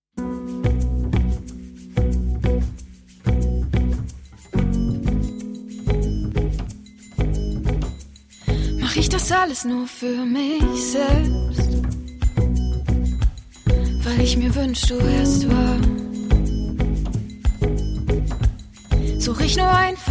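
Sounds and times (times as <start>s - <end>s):
acoustic music: 0.2s - 9.6s, 10.6s - 20.0s.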